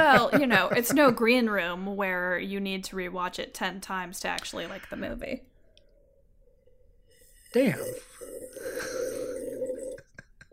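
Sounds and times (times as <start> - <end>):
laughter: 0.0 - 1.2
speech: 0.2 - 5.5, 7.5 - 9.3
slurping wine: 6.5 - 10.4.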